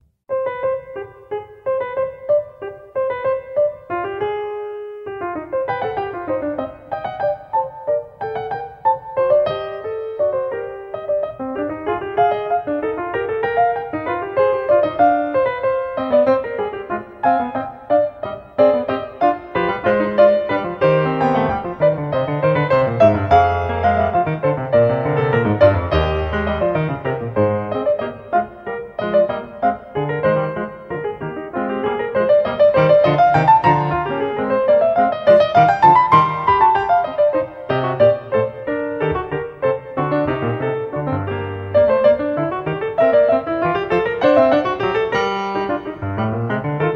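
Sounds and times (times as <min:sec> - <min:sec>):
keyboard fugue: 0:00.3 - 0:46.9.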